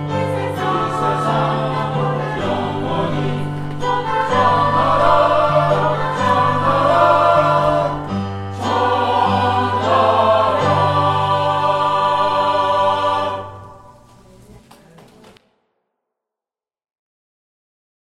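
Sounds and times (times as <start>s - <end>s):
choir singing: 0.0s - 14.2s.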